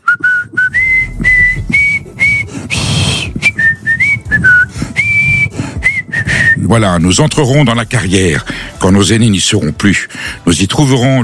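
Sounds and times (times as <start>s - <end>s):
man whistling a national anthem: 0.0s - 6.7s
speech: 6.7s - 11.2s.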